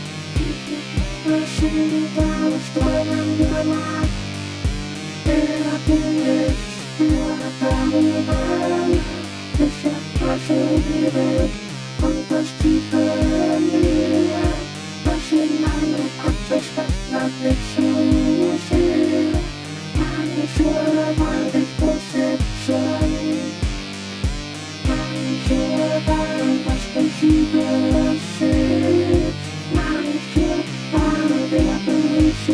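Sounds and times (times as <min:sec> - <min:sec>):
vocoder voice: 0:00.4 - 0:32.5.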